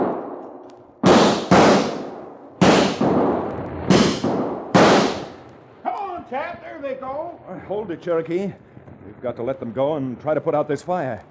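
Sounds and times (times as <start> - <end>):
gunshots fired to scare coyotes: 0.0 - 5.5
speech: 6.3 - 11.2.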